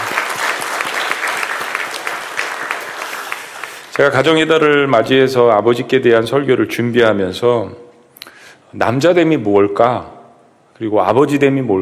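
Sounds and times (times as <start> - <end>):
audience applauding: 0.0 - 4.0
speech: 4.0 - 7.8, 8.7 - 10.2, 10.8 - 11.8.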